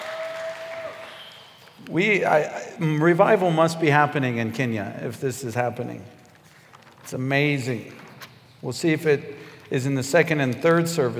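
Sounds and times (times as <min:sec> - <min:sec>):
audience clapping: 0:00.0 - 0:01.8
speech: 0:01.9 - 0:06.2, 0:07.1 - 0:08.0, 0:08.6 - 0:11.1.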